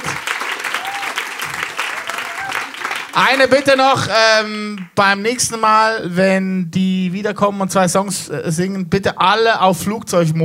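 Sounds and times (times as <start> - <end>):
crowd applause: 0.0 - 4.2
speech: 3.2 - 10.4.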